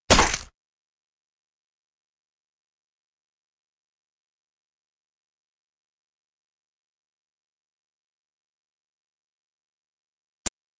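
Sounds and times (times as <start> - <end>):
fight sounds: 0.0 - 0.5.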